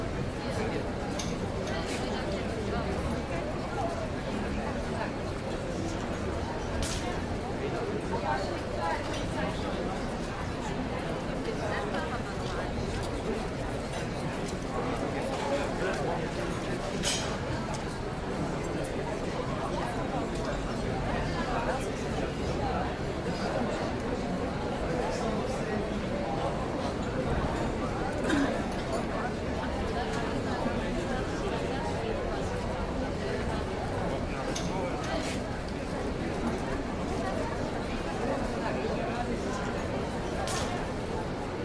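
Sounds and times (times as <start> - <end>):
restaurant babble of many people talking: 0.0 - 41.6.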